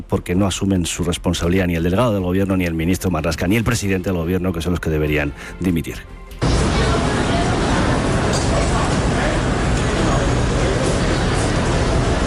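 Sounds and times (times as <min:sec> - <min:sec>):
speech: 0:00.0 - 0:06.2
crowd voices murmuring: 0:06.4 - 0:12.2
morning street traffic in Manhattan, New York City: 0:06.4 - 0:12.2.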